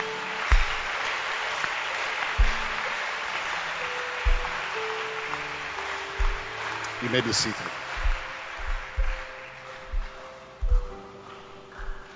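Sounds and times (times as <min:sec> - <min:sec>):
audience clapping hands: 0:00.0 - 0:12.1
deep thumps: 0:00.5 - 0:01.0, 0:02.4 - 0:02.8, 0:04.2 - 0:04.8, 0:06.2 - 0:06.6, 0:07.9 - 0:11.0
speech: 0:07.0 - 0:07.8.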